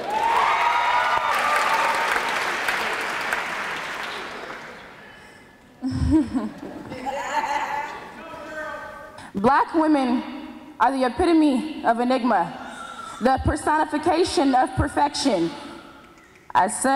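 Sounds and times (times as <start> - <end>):
audience applauding the poet: 0.0 - 5.1
laughter: 5.8 - 8.4
speech: 9.4 - 12.6, 13.2 - 15.6, 16.5 - 16.9.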